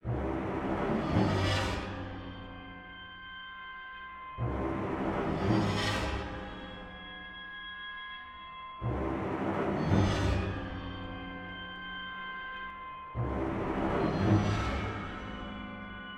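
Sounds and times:
passive music: 0.0s - 16.1s.

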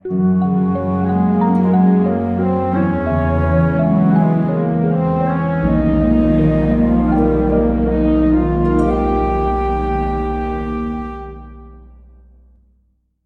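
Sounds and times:
level intro music: 0.0s - 12.5s.

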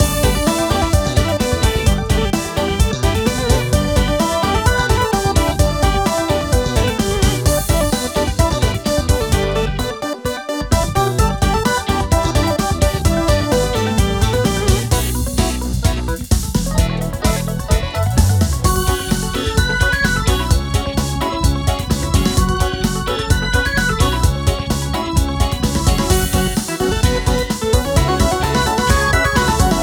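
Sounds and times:
retro style music arrangement: 0.0s - 29.8s.

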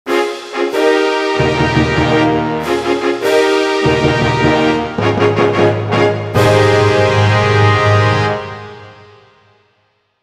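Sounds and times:
player fanfare: 0.1s - 9.4s.

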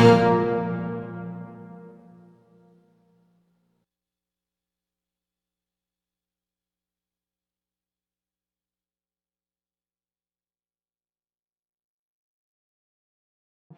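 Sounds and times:
outro music: 0.0s - 2.2s.

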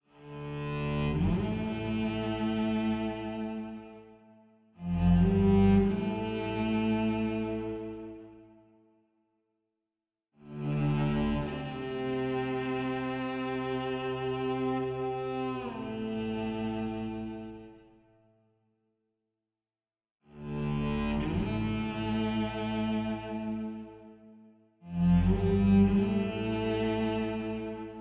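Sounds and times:
cello: 0.0s - 8.8s, 10.4s - 18.3s, 20.2s - 27.9s.

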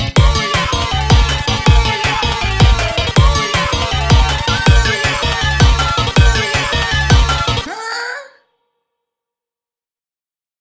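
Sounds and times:
instrumental music: 0.0s - 7.7s.

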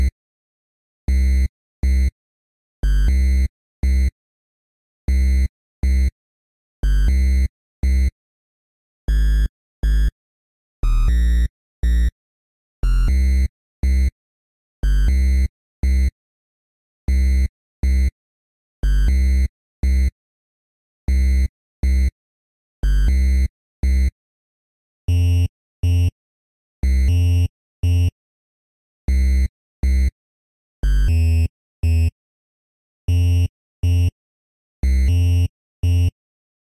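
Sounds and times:
bass: 1.1s - 2.1s, 2.8s - 4.1s, 5.1s - 6.1s, 6.8s - 8.1s, 9.1s - 10.1s, 10.8s - 12.2s, 12.8s - 14.1s, 14.8s - 16.1s, 17.1s - 18.1s, 18.8s - 20.1s, 21.1s - 22.1s, 22.8s - 24.1s, 25.1s - 26.2s, 26.8s - 28.2s, 29.1s - 30.2s, 30.8s - 32.2s, 33.1s - 34.2s, 34.8s - 36.2s.

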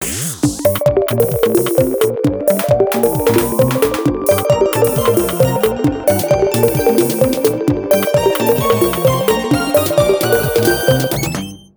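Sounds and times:
ghostly background music: 1.4s - 11.6s.

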